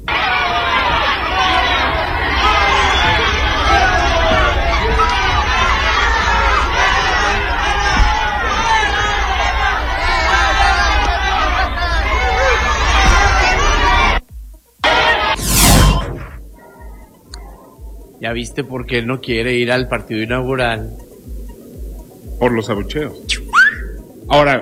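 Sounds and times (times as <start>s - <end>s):
crowd shouting and chattering welcoming arrivals at airport terminal: 0.0s - 14.2s, 14.8s - 18.1s
brief whoosh: 15.3s - 16.4s
speech: 18.3s - 21.0s, 22.4s - 23.3s, 24.3s - 24.5s.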